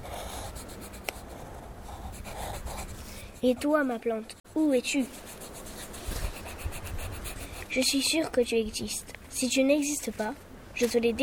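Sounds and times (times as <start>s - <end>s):
pencil or pen drawing on paper: 0.0s - 8.2s
speech: 3.4s - 5.3s, 7.7s - 11.2s.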